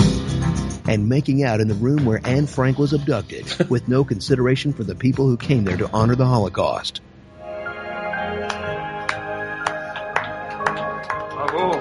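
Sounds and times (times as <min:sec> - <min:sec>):
speech: 0:00.9 - 0:07.1
slow clap: 0:08.4 - 0:11.8.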